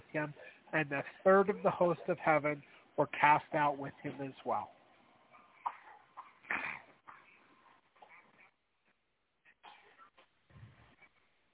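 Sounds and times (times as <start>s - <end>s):
speech: 0.1s - 4.8s
young child coughing: 5.6s - 7.4s, 8.0s - 8.3s, 9.6s - 10.3s.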